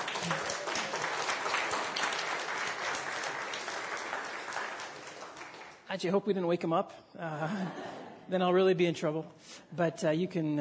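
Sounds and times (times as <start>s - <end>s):
applause at a gathering welcoming a new baby boy: 0.0s - 6.0s
speech: 6.0s - 10.5s.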